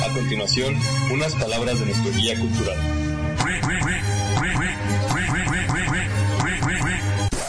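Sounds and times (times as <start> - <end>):
speech: 0.2 - 5.1
duck quacking: 3.4 - 7.3.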